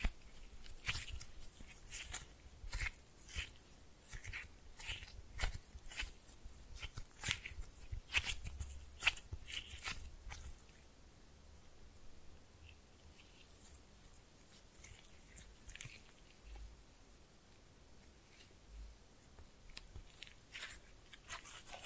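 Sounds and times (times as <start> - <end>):
slime being pressed and mixed with wet sticky clicks and squelches: 0.0 - 10.9, 12.6 - 16.9, 19.6 - 21.8.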